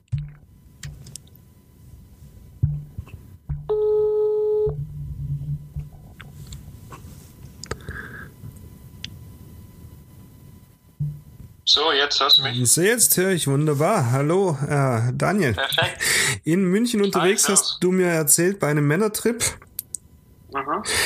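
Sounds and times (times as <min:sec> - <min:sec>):
low hum: 0:00.0 - 0:21.0
telephone call tone: 0:03.7 - 0:04.8
speech: 0:11.8 - 0:19.6, 0:20.8 - 0:21.0.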